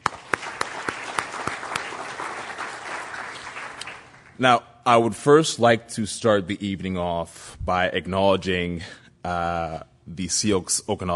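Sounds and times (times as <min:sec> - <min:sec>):
audience applause at an evening university alumni dialogue event: 0:00.0 - 0:04.4
speech: 0:04.4 - 0:11.1.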